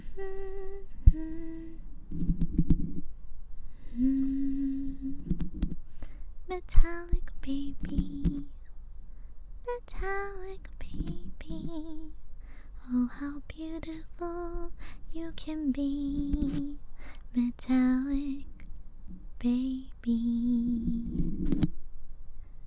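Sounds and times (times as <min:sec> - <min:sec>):
person singing a lullaby: 0:00.0 - 0:02.3, 0:03.7 - 0:05.5, 0:06.5 - 0:08.6, 0:09.6 - 0:12.2, 0:12.8 - 0:21.6.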